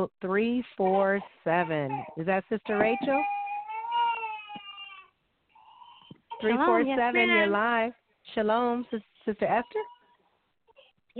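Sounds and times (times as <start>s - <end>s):
speech: 0.0s - 3.4s, 6.4s - 10.0s
baby crying: 0.8s - 7.5s.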